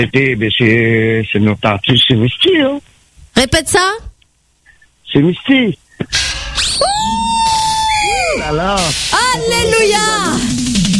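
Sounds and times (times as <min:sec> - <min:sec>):
speech: 0:00.0 - 0:04.1, 0:05.1 - 0:07.4, 0:08.3 - 0:10.6
woman screaming loudly: 0:06.7 - 0:08.4, 0:09.2 - 0:10.4.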